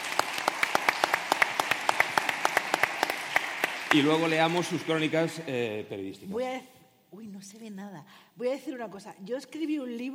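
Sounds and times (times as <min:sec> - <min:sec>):
audience applause: 0:00.0 - 0:05.6
speech: 0:04.0 - 0:10.1.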